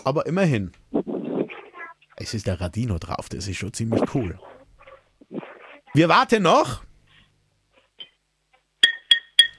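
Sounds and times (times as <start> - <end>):
speech: 0.0 - 0.9, 2.2 - 4.5, 6.0 - 6.9
ceramic mug clinked like a glass: 8.8 - 9.5.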